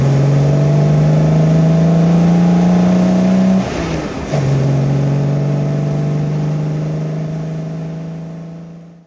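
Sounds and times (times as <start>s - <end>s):
Jaguar XK150S engine during rally drive: 0.0s - 9.0s.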